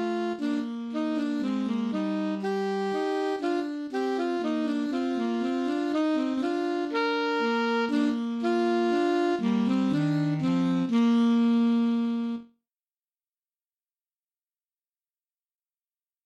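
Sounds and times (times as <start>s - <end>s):
easy saxophone duets: 0.0s - 12.5s.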